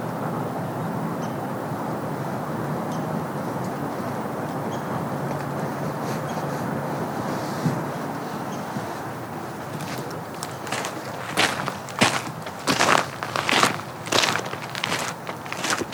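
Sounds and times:
steady low rushing wash: 0.0 - 15.9
footsteps on dry ground on a woodland trail: 7.8 - 15.9.

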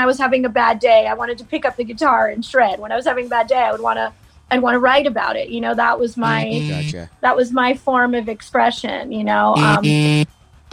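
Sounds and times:
speech: 0.0 - 10.7
mobile phone buzzing: 6.2 - 7.0, 9.6 - 10.3.

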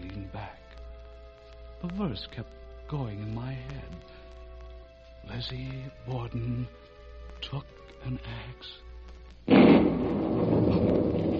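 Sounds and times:
speech: 1.8 - 4.2, 5.2 - 8.8
thunder from a breaking heat storm: 9.5 - 11.3.

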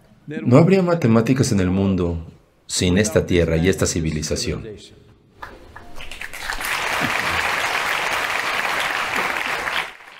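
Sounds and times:
speech: 0.3 - 5.6
audience applause: 5.8 - 10.1.

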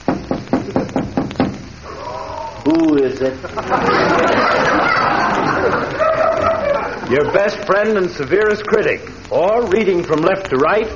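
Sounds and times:
knocking on a door: 0.1 - 1.6
speech: 2.6 - 6.0, 7.1 - 10.9
laughter: 3.2 - 7.8.

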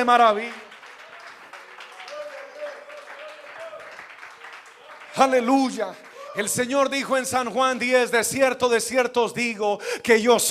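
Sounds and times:
speech: 0.0 - 0.6, 5.2 - 10.4
audience applauding: 0.0 - 7.2.

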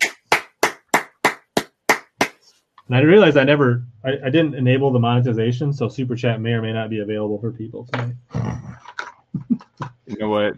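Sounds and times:
golf clap, soft slow hand clapping: 0.0 - 2.4
speech: 2.9 - 8.4, 10.2 - 10.5.

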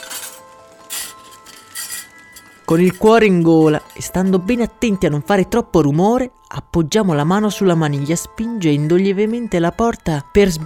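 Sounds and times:
clinking dishes and crockery: 0.0 - 4.7
speech: 2.7 - 10.6.

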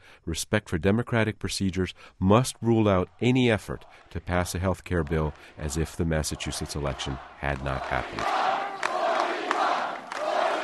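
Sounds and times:
speech: 0.2 - 8.5
crowd chanting forty-one at Scott Brown's election victory celebration: 3.1 - 10.6.

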